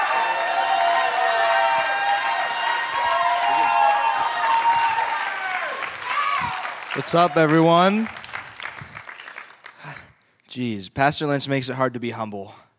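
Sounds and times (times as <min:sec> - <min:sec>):
audience applause at a church fine arts showcase: 0:00.0 - 0:10.1
speech: 0:07.0 - 0:08.2, 0:10.6 - 0:12.6.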